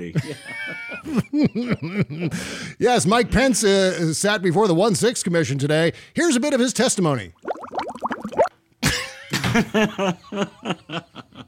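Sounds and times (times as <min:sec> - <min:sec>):
laughter: 0:00.0 - 0:02.4, 0:08.8 - 0:11.4
speech: 0:00.0 - 0:07.5, 0:09.5 - 0:11.2
person blowing bubbles into a glass of milk: 0:07.4 - 0:08.5.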